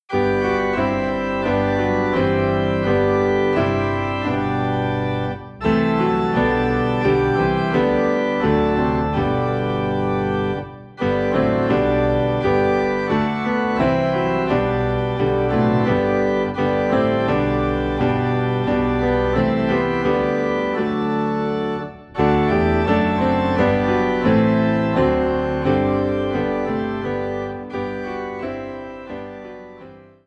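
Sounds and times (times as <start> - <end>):
piano: 0.0 - 30.2
low organ: 0.1 - 30.2.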